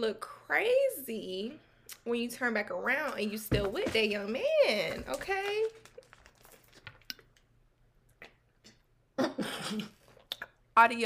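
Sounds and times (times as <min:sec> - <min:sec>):
speech: 0:00.0 - 0:05.9, 0:09.4 - 0:10.0, 0:10.8 - 0:11.0
person choking and coughing on water: 0:09.2 - 0:10.2.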